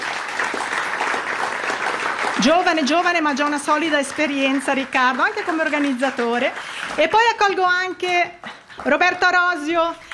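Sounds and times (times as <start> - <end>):
festival audience at Montebello applauding a violinist: 0.0 - 7.4, 9.9 - 10.1
speech: 2.4 - 10.0.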